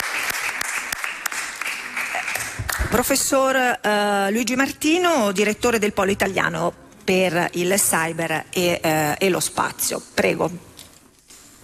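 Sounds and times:
audience applause for a speaker at a conference: 0:00.0 - 0:02.8
speech: 0:02.9 - 0:10.7.

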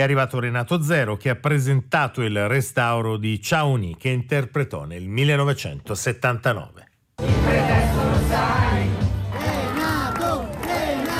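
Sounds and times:
speech: 0:00.0 - 0:08.9
crowd chanting for a singer at a cinema event in Ostia, Rome: 0:07.2 - 0:11.1.

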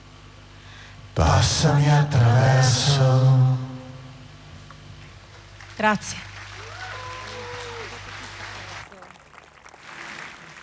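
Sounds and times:
speech: 0:01.2 - 0:03.6, 0:05.8 - 0:06.3
audience applauding: 0:05.5 - 0:10.6.

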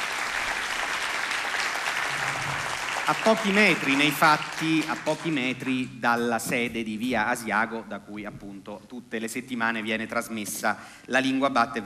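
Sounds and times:
audience applause in the hall of Teatro Manzoni in Rome: 0:00.0 - 0:05.4
speech: 0:03.1 - 0:11.8.

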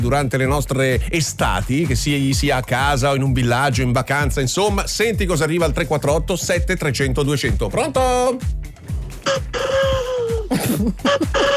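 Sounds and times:
speech: 0:00.0 - 0:08.7, 0:10.6 - 0:11.5
person imitating a turtle dove's cooing call: 0:09.3 - 0:11.5.

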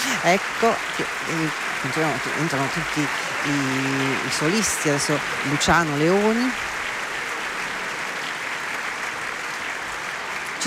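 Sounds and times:
audience applause: 0:00.0 - 0:10.6
speech: 0:00.2 - 0:06.8.

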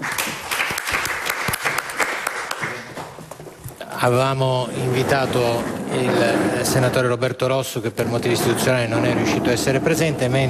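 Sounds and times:
audience applause: 0:00.0 - 0:03.2
speech: 0:04.0 - 0:10.4.

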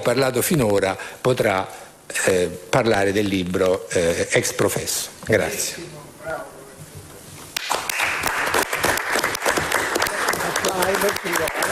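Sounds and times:
speech: 0:00.0 - 0:06.5
audience applause: 0:07.6 - 0:11.6.

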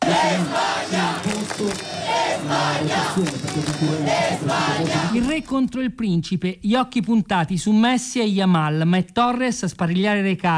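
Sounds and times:
football fans celebrating: 0:00.0 - 0:05.3
speech: 0:02.5 - 0:10.5.

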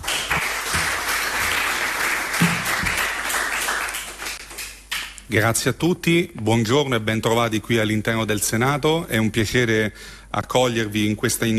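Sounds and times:
crowd applauding: 0:00.0 - 0:05.2
speech: 0:05.3 - 0:11.5.

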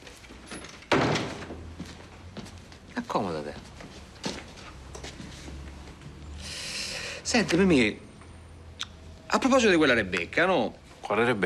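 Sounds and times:
door slamming shut: 0:00.8 - 0:01.7
speech: 0:03.0 - 0:03.7, 0:07.3 - 0:08.1, 0:09.3 - 0:11.4.

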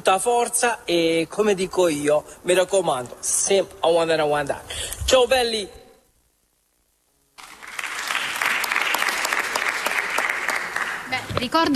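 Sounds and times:
speech: 0:00.0 - 0:05.8, 0:11.4 - 0:11.7
applause: 0:07.4 - 0:11.2.

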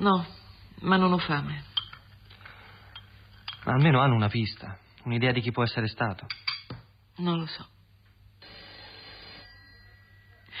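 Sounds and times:
speech: 0:00.0 - 0:01.7, 0:03.6 - 0:06.4, 0:07.2 - 0:07.8
telephone ringing with a quiet electronic ring: 0:08.4 - 0:10.5.

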